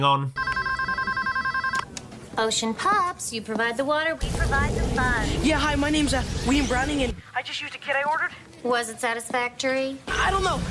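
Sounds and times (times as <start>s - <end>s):
speech: 0.0s - 0.4s, 2.4s - 10.6s
telephone ringing over the line on a customer service call: 0.4s - 2.0s.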